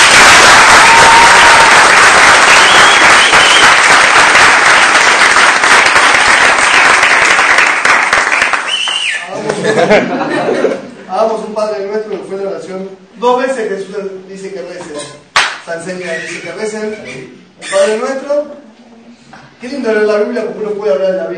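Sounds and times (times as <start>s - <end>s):
audience applause: 0.0s - 9.3s
laughter: 9.3s - 11.1s
speech: 9.9s - 10.2s, 11.2s - 18.7s, 19.6s - 21.3s.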